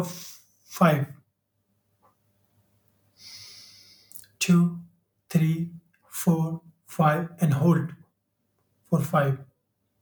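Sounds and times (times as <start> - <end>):
speech: 0.0 - 1.2, 4.5 - 8.0, 8.9 - 9.5
slow deep inhale during a guided meditation: 3.2 - 4.2.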